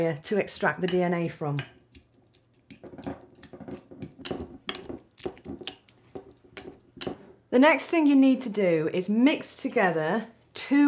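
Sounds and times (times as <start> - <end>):
speech: 0.0 - 1.8, 7.5 - 10.8
food being mashed in a bowl to extract DNA: 0.8 - 7.3.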